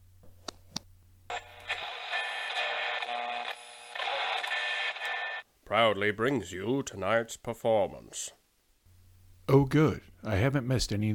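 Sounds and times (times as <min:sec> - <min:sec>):
radio static as the dial is turned: 0:01.3 - 0:05.4
speech: 0:05.7 - 0:08.4, 0:09.5 - 0:11.1.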